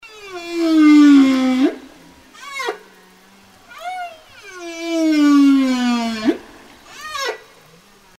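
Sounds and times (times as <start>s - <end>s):
whale call: 0.0s - 7.6s.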